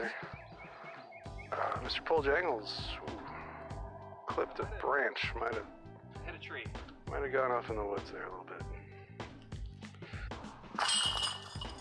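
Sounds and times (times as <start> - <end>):
speech: 0.0 - 0.4, 1.8 - 3.2, 4.3 - 8.6
disc golf disc hitting basket chains: 10.8 - 11.7.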